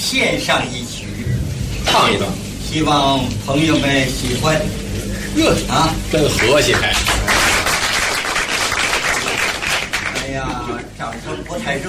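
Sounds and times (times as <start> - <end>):
speech: 0.0 - 1.3, 1.9 - 7.5, 10.3 - 11.8
lukewarm audience clapping: 6.2 - 11.8.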